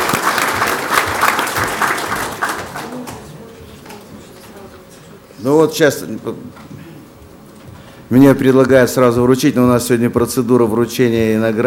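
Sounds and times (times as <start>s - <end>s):
audience applause: 0.0s - 3.7s
speech: 5.4s - 6.9s, 8.1s - 11.6s.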